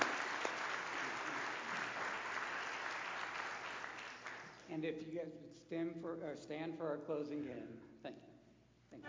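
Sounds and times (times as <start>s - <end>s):
audience applause for graduates: 0.0s - 4.7s
speech: 4.7s - 8.3s.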